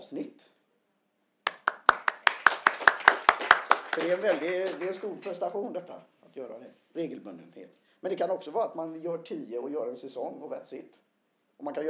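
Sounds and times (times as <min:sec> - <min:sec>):
audience applause: 0:01.5 - 0:05.4
speech: 0:04.0 - 0:11.0, 0:11.6 - 0:11.8.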